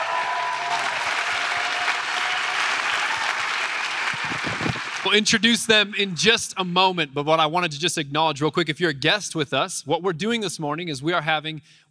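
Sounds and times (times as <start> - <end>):
church audience applause welcoming missionaries at a Global Missions Summit: 0.0 - 5.3
speech: 5.1 - 11.8.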